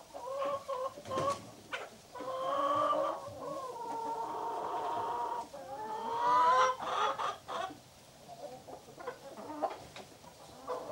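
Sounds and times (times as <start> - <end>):
chickens clucking and cackling in a hen house: 0.0 - 10.9.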